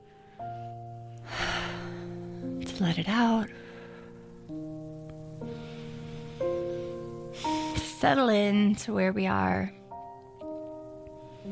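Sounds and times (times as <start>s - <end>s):
deep inhale during a guided prayer: 0.0s - 2.6s, 3.5s - 4.4s, 5.4s - 7.8s, 11.1s - 11.5s
soft sustained musical tones: 0.0s - 11.5s
speech: 2.8s - 3.7s, 8.0s - 9.8s.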